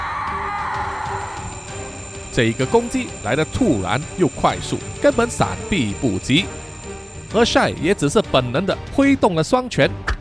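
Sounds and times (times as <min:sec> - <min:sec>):
ghostly wailing howl: 0:00.0 - 0:08.2
speech: 0:02.4 - 0:06.7, 0:07.3 - 0:10.1.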